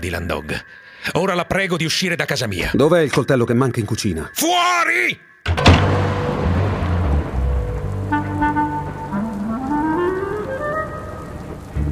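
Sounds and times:
speech: 0.0 - 5.9
rain falling: 5.6 - 11.8.

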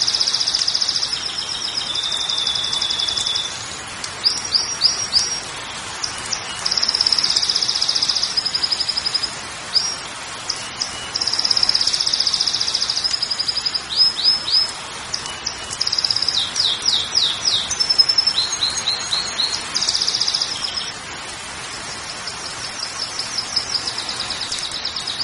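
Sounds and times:
Belgian canary song: 0.0 - 21.0, 21.7 - 25.2.

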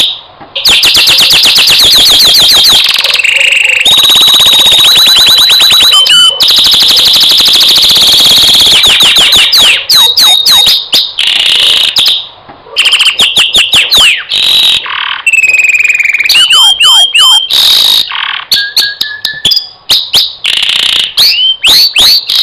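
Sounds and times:
champion canary singing: 0.0 - 22.4.

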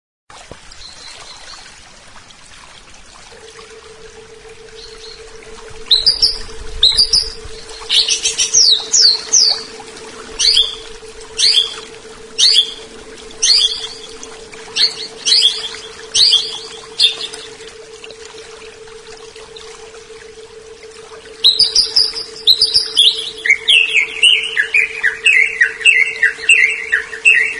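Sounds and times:
leafbird singing varied phrases: 4.6 - 17.6, 21.4 - 27.5.

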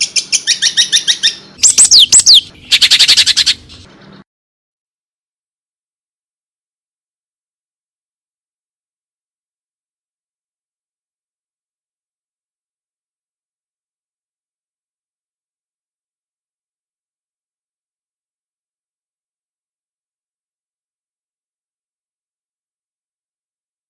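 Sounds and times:
long-tailed shrike harsh song: 0.0 - 4.2.

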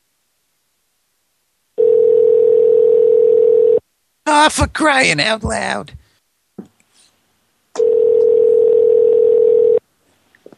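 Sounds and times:
telephone line tone on an unanswered call: 1.8 - 3.8, 7.8 - 9.8
speech: 4.4 - 6.0.

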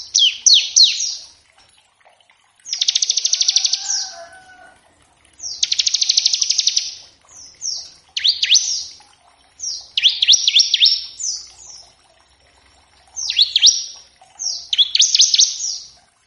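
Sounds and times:
Bar-winged prinia song: 0.0 - 1.4, 2.7 - 4.6, 5.4 - 9.0, 9.6 - 12.0, 13.2 - 16.0.

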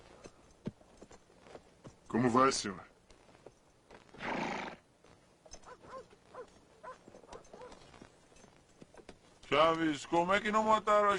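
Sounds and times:
horse hooves clip-clopping: 0.0 - 11.1
speech: 2.1 - 2.9, 9.6 - 11.1
horse snorting: 4.1 - 4.8.

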